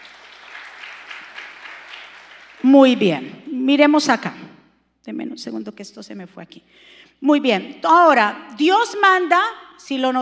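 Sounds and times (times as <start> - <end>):
audience applauding: 0.0 - 2.6
speech: 2.6 - 4.4, 5.0 - 10.2.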